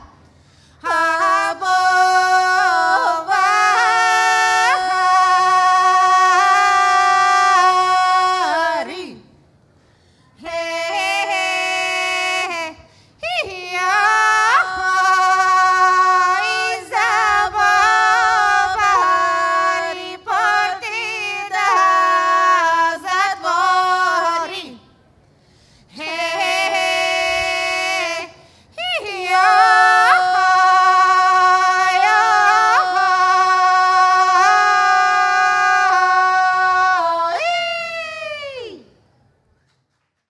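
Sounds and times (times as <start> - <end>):
Bulgarian women's choir singing: 0.8 - 9.3, 10.4 - 24.8, 26.0 - 37.8.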